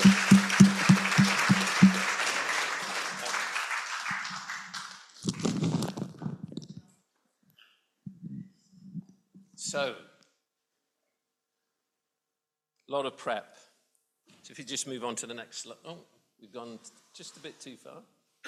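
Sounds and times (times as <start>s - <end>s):
audience clapping: 0.0s - 5.6s
speech: 9.8s - 10.1s, 13.0s - 13.7s, 14.5s - 18.2s.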